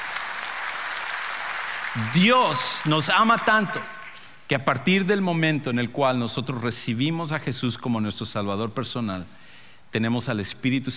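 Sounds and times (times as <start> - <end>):
people applauding: 0.0 - 3.8
speech: 2.0 - 10.9.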